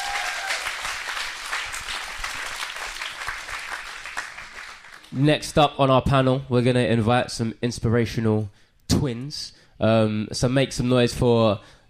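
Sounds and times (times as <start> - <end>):
audience applause: 0.0 - 5.1
speech: 5.1 - 11.8.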